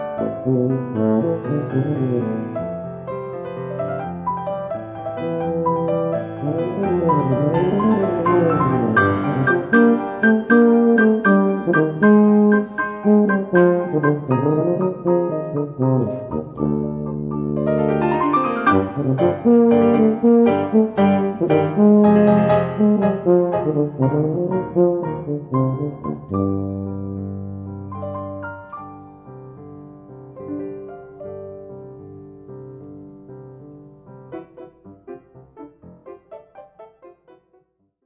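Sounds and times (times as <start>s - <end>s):
tuba playing a sonata: 0.1s - 2.9s, 5.0s - 27.7s.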